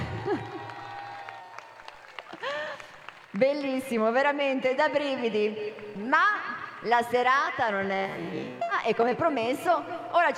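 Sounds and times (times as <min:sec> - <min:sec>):
audience cheering: 0:00.0 - 0:03.0
audience applause: 0:00.0 - 0:03.6
speech: 0:03.3 - 0:10.3.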